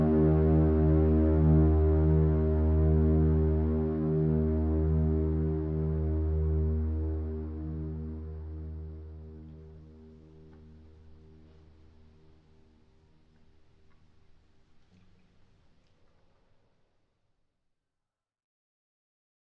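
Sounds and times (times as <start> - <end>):
ambient music: 0.0 - 13.3.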